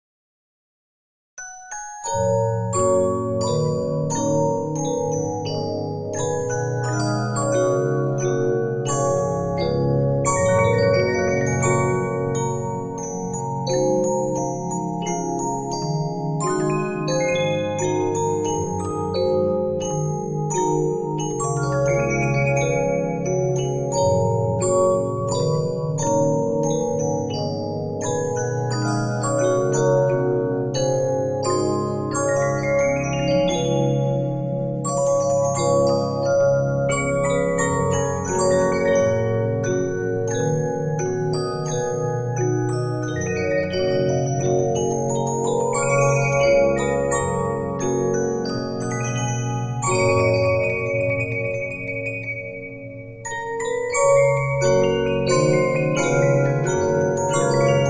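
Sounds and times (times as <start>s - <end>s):
Regina 15-inch disc music box: 1.4s - 57.8s.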